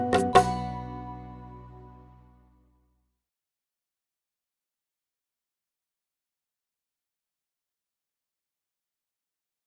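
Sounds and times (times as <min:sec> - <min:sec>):
instrumental music: 0:00.0 - 0:02.6.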